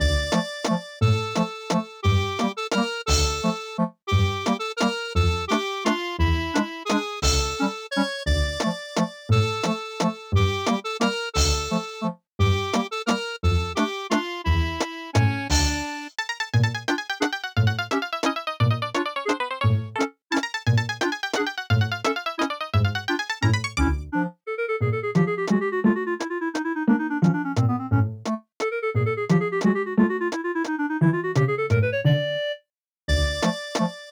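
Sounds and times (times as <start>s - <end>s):
retro waltz music aircheck: 0.0s - 32.5s, 33.1s - 34.0s.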